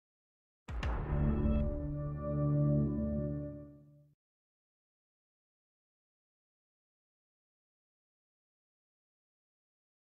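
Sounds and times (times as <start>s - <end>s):
streaming service intro sound effect: 0.8s - 3.9s.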